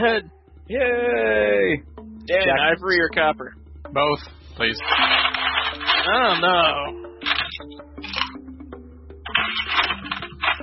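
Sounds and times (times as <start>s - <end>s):
speech: 0.0s - 5.3s, 6.1s - 7.0s
ice machine: 4.8s - 6.6s, 7.2s - 8.3s, 9.3s - 10.6s.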